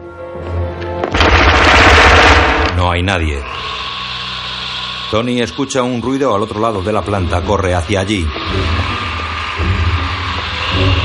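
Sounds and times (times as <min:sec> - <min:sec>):
burst of automatic gunfire: 0:01.1 - 0:02.8
low hum: 0:01.2 - 0:11.0
speech: 0:02.8 - 0:03.8, 0:05.1 - 0:09.0.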